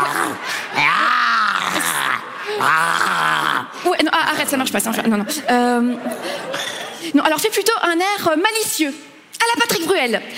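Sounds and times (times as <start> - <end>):
person imitating a tiger growl: 0.0 - 3.8
speech: 2.6 - 10.3.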